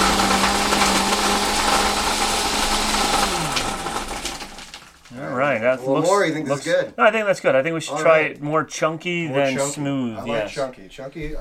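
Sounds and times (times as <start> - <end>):
blender crushing ice for a frosty milky drink: 0.0 - 5.1
speech: 5.6 - 11.3.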